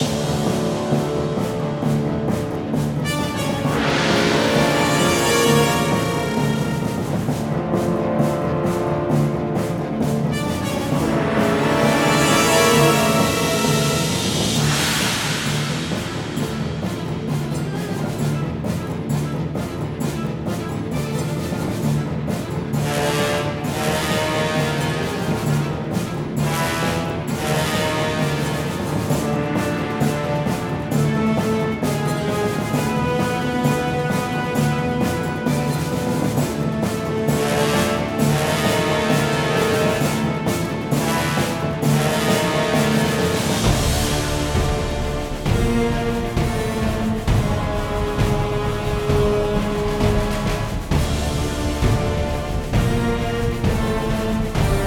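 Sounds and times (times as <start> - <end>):
mid action music: 0.0 - 54.8.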